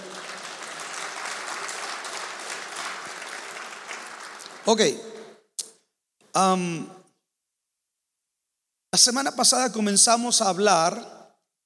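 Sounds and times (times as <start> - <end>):
audience applause: 0.0 - 4.7
speech: 4.7 - 5.1, 6.4 - 7.0, 9.0 - 11.2.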